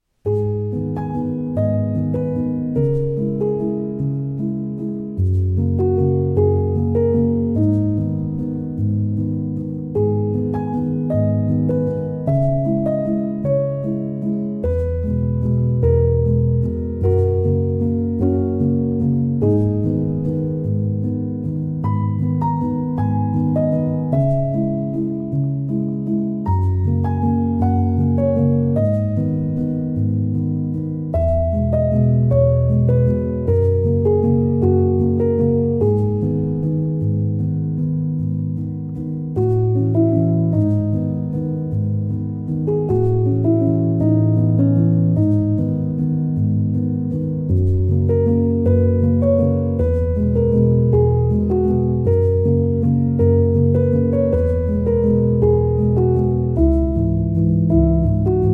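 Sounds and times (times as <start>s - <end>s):
love waltz: 0.2s - 58.5s.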